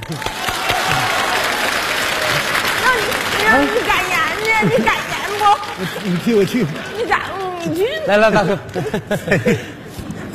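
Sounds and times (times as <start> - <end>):
audience applauding at a festive gathering: 0.0 - 9.6
speech: 0.1 - 0.3, 3.5 - 4.0, 4.6 - 9.8
laughter: 2.2 - 10.0.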